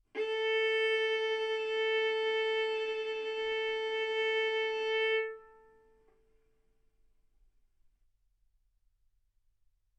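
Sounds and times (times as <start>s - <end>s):
violin bowed arco notes: 0.2s - 5.9s.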